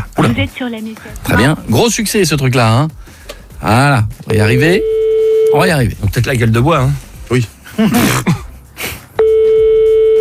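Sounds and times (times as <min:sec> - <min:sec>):
speech: 0:00.2 - 0:03.0, 0:03.6 - 0:08.4
telephone call ringing tone without answer: 0:09.2 - 0:10.2.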